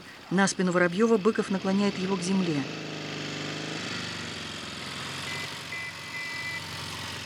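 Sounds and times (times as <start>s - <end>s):
speech: 0.3s - 3.0s
motorcycle with sidecar driving past: 1.4s - 7.2s.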